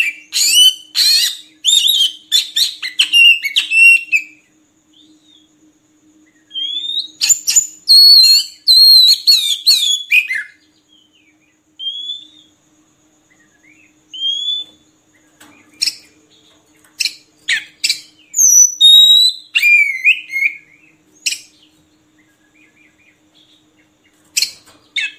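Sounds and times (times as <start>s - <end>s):
oriental magpie-robin singing: 0.0s - 4.3s, 6.5s - 10.6s, 17.0s - 23.2s
speech: 8.2s - 10.6s.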